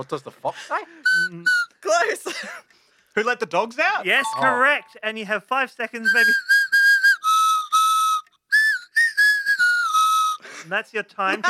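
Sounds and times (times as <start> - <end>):
speech: 0.0 - 6.6, 10.6 - 11.4
person whistling a tune: 1.0 - 1.8, 6.0 - 10.4.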